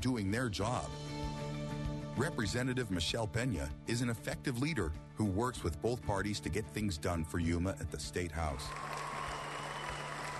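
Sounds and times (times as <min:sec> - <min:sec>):
speech: 0:00.0 - 0:01.0, 0:02.2 - 0:09.1
crowd of constituents applauding at a political event: 0:08.5 - 0:10.3.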